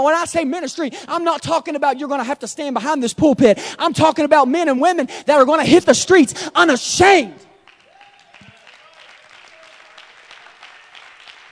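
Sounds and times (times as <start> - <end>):
speech: 0.0 - 7.5
audience clapping: 7.6 - 11.5.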